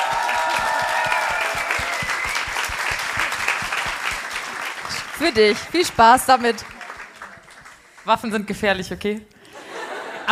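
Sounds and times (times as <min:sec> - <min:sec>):
audience applause: 0:00.0 - 0:08.2
speech: 0:05.2 - 0:06.7, 0:08.0 - 0:09.3
laughter: 0:09.5 - 0:10.2.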